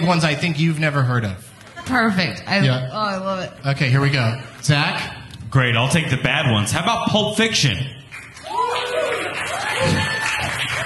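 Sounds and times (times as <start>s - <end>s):
speech: 0.0s - 8.0s
audience clapping: 8.0s - 10.8s.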